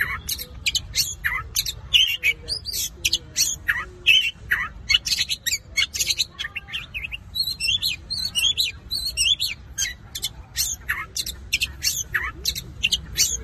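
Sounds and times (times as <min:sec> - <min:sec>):
long-tailed shrike song: 0:00.0 - 0:13.4.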